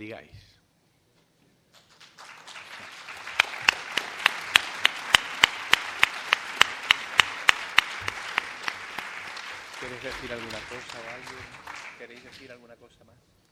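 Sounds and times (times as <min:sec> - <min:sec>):
speech: 0:00.0 - 0:00.5, 0:09.9 - 0:13.4
audience applause: 0:01.9 - 0:12.6.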